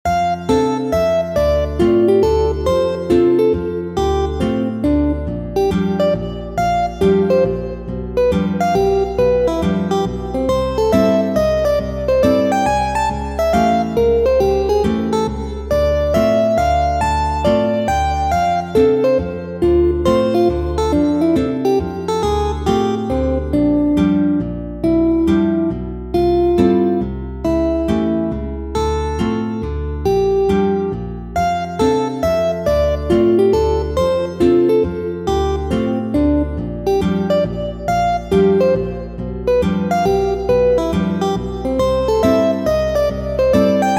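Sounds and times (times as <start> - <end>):
guitar: 0.0 - 43.9.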